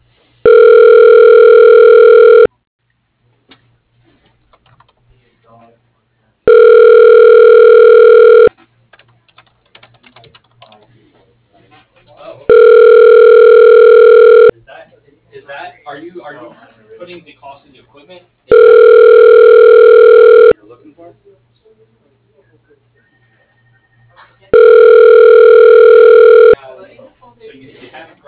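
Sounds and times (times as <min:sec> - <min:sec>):
telephone ringback tone connecting to a voicemail line: 0:00.4 - 0:02.5, 0:06.5 - 0:08.5, 0:12.5 - 0:14.5, 0:18.5 - 0:20.6, 0:24.5 - 0:26.6.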